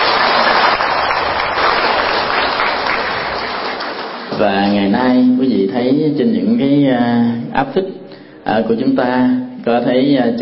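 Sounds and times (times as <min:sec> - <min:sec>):
audience applause at a Vietnamese Buddhist celebration evening in England: 0:00.0 - 0:04.4
speech: 0:04.4 - 0:10.4.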